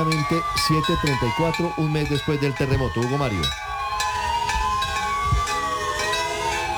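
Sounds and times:
speech: 0.0s - 3.7s
church bells ringing in Cali: 0.0s - 6.7s
sirens in Cali: 0.0s - 6.7s.

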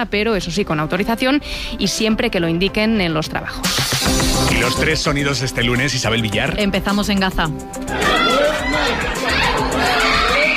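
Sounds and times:
speech: 0.0s - 10.0s
crowd noise: 7.8s - 10.5s
family screaming and wailing in grief in Gaza: 7.8s - 10.5s.

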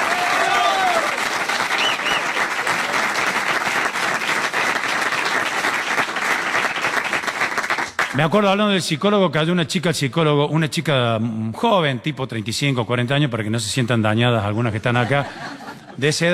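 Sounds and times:
audience applause: 0.0s - 8.2s
speech: 8.2s - 16.3s
laughter: 14.6s - 16.3s.

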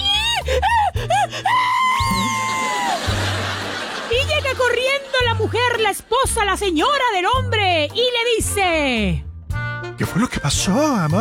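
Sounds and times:
voice imitating a child crying: 0.0s - 3.0s
laughter: 1.0s - 5.9s
speech: 5.4s - 9.2s, 10.0s - 11.1s.

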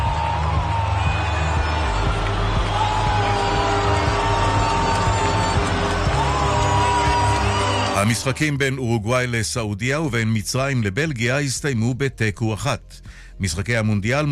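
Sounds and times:
stadium crowd booing and whistling during anthem: 0.0s - 8.5s
speech: 8.2s - 14.2s.

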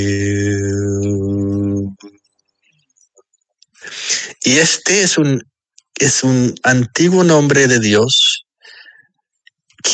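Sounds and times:
speech: 0.0s - 0.4s, 4.5s - 8.4s
sung spiritual chant: 0.0s - 2.2s.

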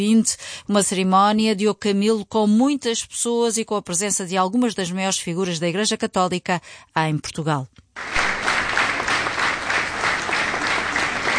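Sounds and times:
speech: 0.0s - 8.3s
loud applause from a large crowd: 8.0s - 11.3s.

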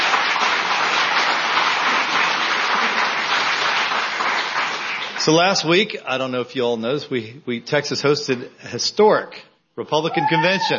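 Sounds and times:
audience applause: 0.0s - 5.7s
speech: 5.2s - 10.7s.

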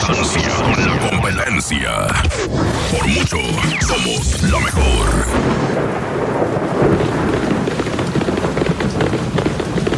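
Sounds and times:
heavy rain: 0.0s - 9.9s
speech: 0.1s - 7.6s
low rumbling thunder: 5.3s - 9.9s.

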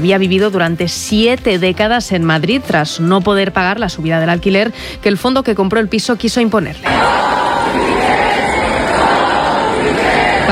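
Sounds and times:
speech: 0.0s - 7.9s
protest crowd shouting: 6.8s - 10.5s.

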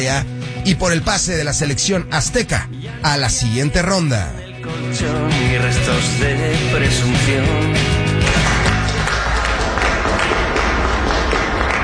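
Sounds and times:
speech: 0.0s - 8.5s
hands clapping: 7.8s - 11.8s.

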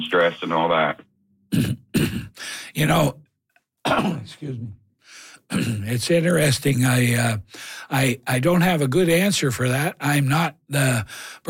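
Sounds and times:
speech: 0.1s - 1.8s, 2.8s - 3.2s, 3.9s - 4.8s, 5.5s - 11.4s
person coughing during a gardening Q and A: 1.5s - 2.4s, 3.9s - 4.6s, 5.5s - 6.0s.

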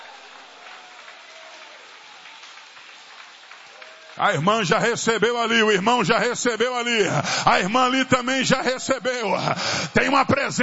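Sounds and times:
audience applauding: 0.0s - 6.3s
speech: 4.2s - 10.6s.

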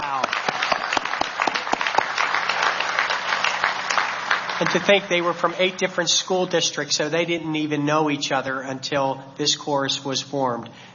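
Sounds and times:
audience applause: 0.0s - 5.4s
speech: 4.6s - 10.9s.

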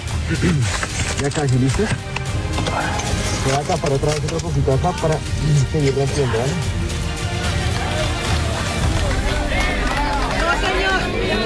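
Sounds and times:
speech: 0.3s - 6.8s
community applauding a rescue: 6.9s - 11.4s.

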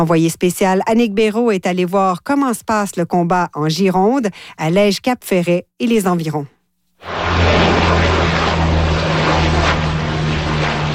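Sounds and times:
speech: 0.0s - 7.2s
Canadair water bomber aircraft flying overhead: 7.0s - 10.9s.

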